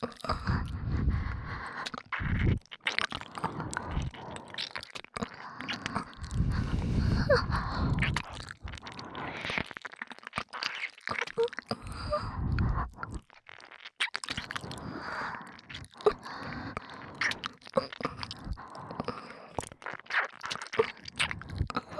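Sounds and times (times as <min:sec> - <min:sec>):
breathing sounds in both ears: 0:00.0 - 0:02.6, 0:03.2 - 0:09.6, 0:11.7 - 0:13.2, 0:14.5 - 0:19.7, 0:21.2 - 0:21.9
ear licking in both ears: 0:00.0 - 0:21.9.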